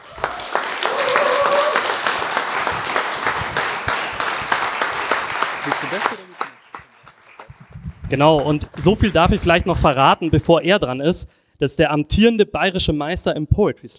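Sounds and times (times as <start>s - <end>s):
loud audience applause: 0.0s - 10.7s
speech: 5.8s - 6.4s, 8.1s - 13.9s.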